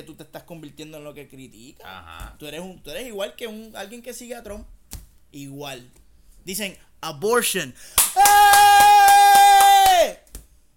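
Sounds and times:
speech: 0:00.0 - 0:08.8
hand claps: 0:08.0 - 0:10.5.

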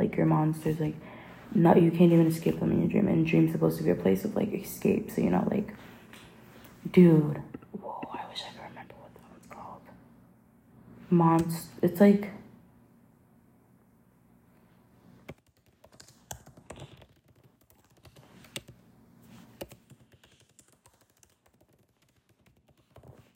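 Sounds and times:
speech: 0:00.1 - 0:05.9, 0:06.8 - 0:08.6, 0:11.1 - 0:12.4
typing on a computer keyboard: 0:15.3 - 0:18.8, 0:19.5 - 0:23.3.

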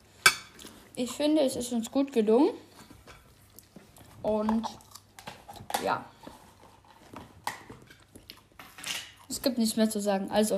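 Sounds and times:
speech: 0:01.0 - 0:02.7, 0:04.2 - 0:04.8, 0:05.8 - 0:06.1, 0:09.4 - 0:10.5
raw cucumber being bitten and chewed: 0:03.3 - 0:09.6.

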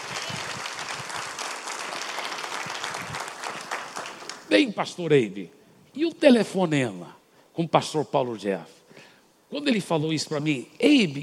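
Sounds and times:
crowd applauding: 0:00.0 - 0:04.5
speech: 0:04.5 - 0:08.8, 0:09.5 - 0:11.2.

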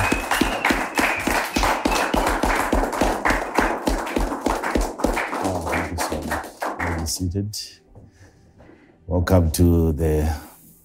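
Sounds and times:
church congregation clapping rhythmically: 0:00.0 - 0:07.3
speech: 0:07.2 - 0:07.7, 0:09.1 - 0:10.4.

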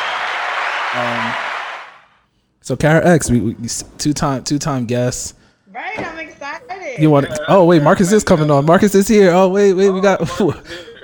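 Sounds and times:
people clapping: 0:00.0 - 0:02.0
speech: 0:00.9 - 0:01.5, 0:02.6 - 0:10.9.

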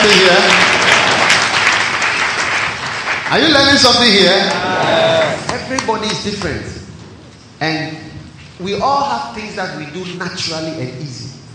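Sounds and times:
audience clapping: 0:00.0 - 0:06.6
speech: 0:03.3 - 0:06.8, 0:07.6 - 0:11.4.

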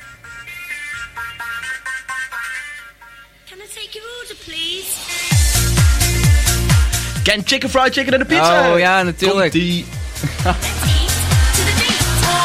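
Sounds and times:
speech: 0:03.6 - 0:05.3, 0:07.2 - 0:10.7
novelty pop song about fast food: 0:04.3 - 0:12.4
laughter: 0:10.2 - 0:11.2.

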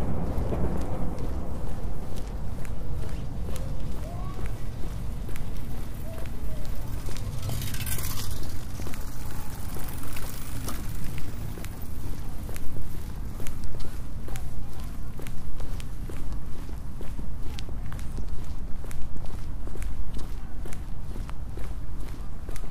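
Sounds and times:
low rumble: 0:00.0 - 0:09.6
walking footsteps: 0:00.0 - 0:22.6.

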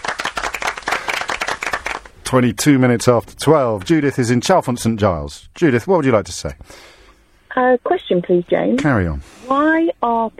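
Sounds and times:
audience applause: 0:00.0 - 0:02.2
speech: 0:02.3 - 0:06.9, 0:07.6 - 0:10.3.

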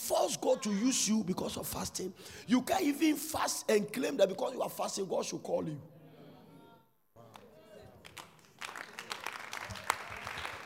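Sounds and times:
speech: 0:00.3 - 0:06.0
audience clapping: 0:07.3 - 0:10.6.

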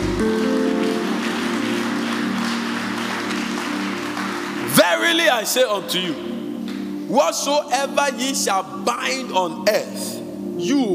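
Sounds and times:
audience clapping: 0:00.0 - 0:05.4
speech: 0:05.1 - 0:06.4, 0:07.1 - 0:10.9.

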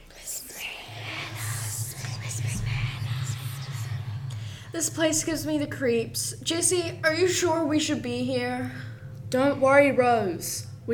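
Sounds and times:
eerie breathy whispers echoing off walls: 0:00.0 - 0:09.7
low steady droning hum: 0:00.1 - 0:10.9
speech: 0:04.8 - 0:10.9.

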